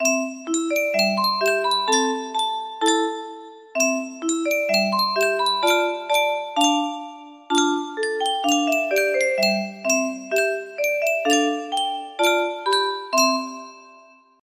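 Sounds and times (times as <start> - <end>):
music box melody: 0.0 - 14.4.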